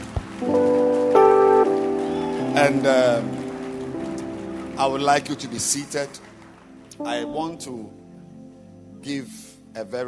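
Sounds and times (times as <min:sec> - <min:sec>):
audience clapping: 0:00.0 - 0:07.7
speech: 0:02.6 - 0:03.4, 0:04.8 - 0:06.3, 0:07.0 - 0:08.0, 0:09.0 - 0:10.0.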